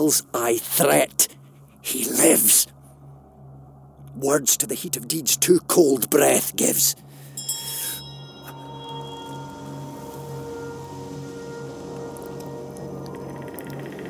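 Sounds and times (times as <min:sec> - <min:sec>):
speech: 0:00.0 - 0:01.2, 0:01.8 - 0:02.8, 0:04.2 - 0:07.2
bell struck and ringing: 0:07.4 - 0:12.0.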